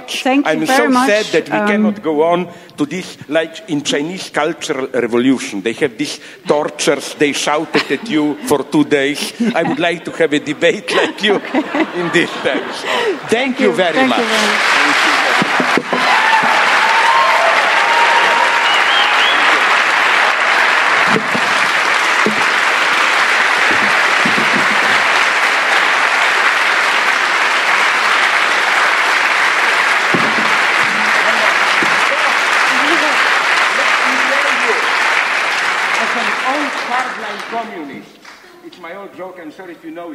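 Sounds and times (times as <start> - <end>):
speech: 0.1 - 15.1
laughter: 7.6 - 15.9, 23.5 - 25.4
large audience applause: 11.9 - 38.5.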